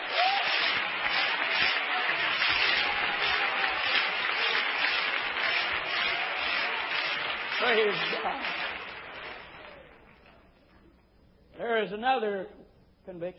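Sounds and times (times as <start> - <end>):
audience clapping hands: 0.0 - 10.6
speech: 7.6 - 8.6, 11.8 - 13.3.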